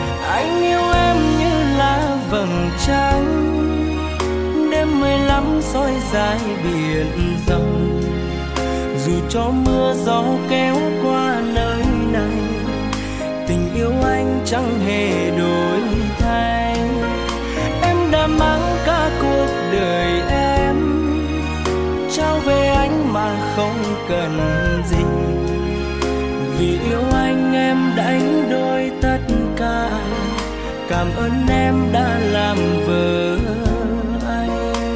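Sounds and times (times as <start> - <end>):
cover ringtone music: 0.0 - 34.9.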